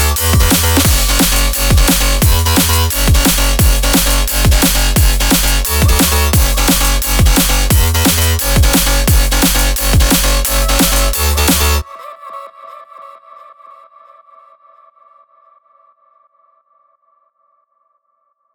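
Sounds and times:
drum and bass music: 0.0s - 11.8s.

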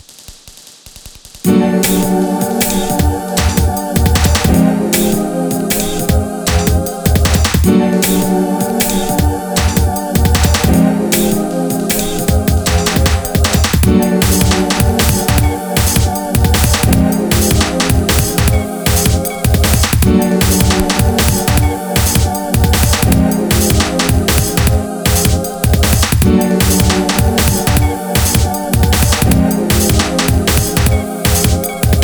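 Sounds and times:
atmospheric sound: 1.4s - 32.0s.

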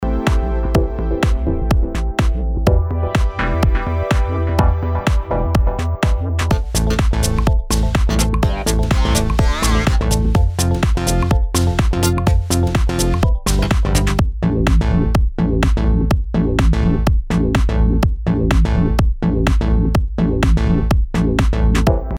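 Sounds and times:
house music: 0.0s - 22.1s.

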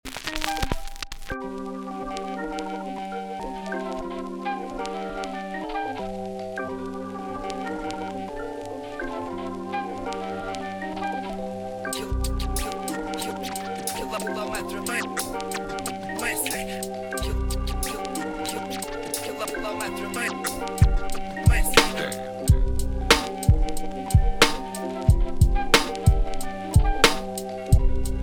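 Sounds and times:
instrumental music: 0.1s - 28.2s.

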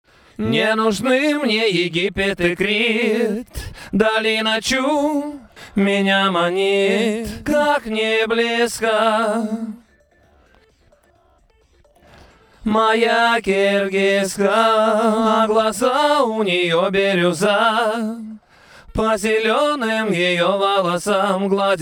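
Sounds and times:
a cappella singing: 0.1s - 21.8s.

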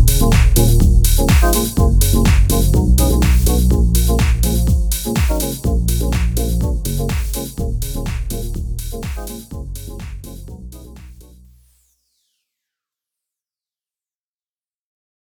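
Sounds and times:
garage house music: 0.0s - 11.5s.

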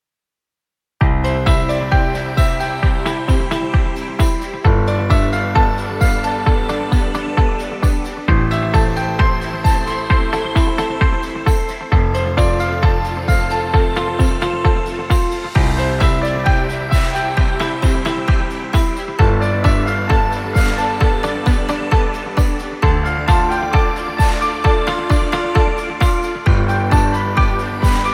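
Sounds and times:
happy corporate music: 1.0s - 28.1s.

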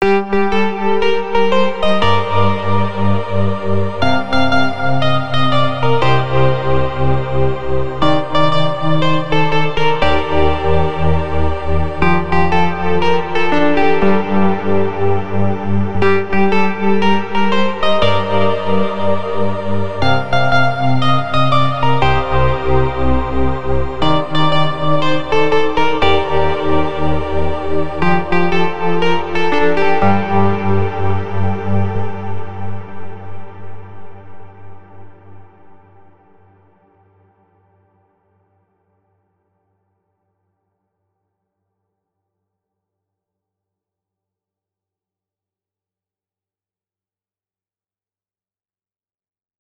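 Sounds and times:
melody: 0.0s - 32.9s.

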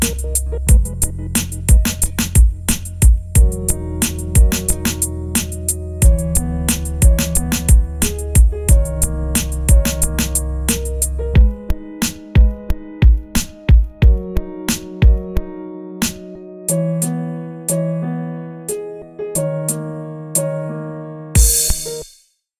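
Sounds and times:
hip-hop instrumental: 0.0s - 16.8s.

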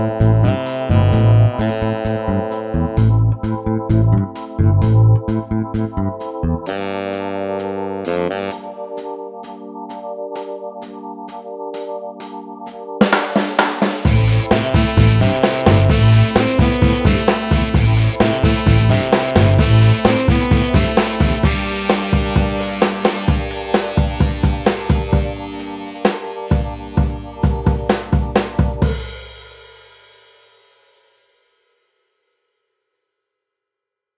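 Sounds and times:
dark saxophone music: 0.0s - 11.7s, 14.0s - 29.2s.

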